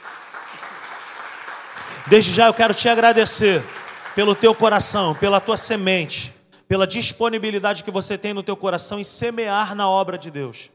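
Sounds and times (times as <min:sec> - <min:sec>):
audience applause: 0:00.0 - 0:05.9
speech: 0:02.0 - 0:10.7.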